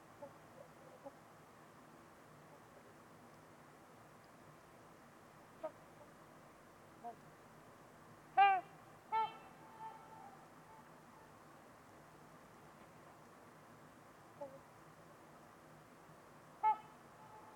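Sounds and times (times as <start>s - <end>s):
trumpeter swan honking: 0.2s - 1.2s, 5.6s - 6.2s, 8.4s - 11.4s, 14.4s - 14.7s, 16.6s - 17.5s.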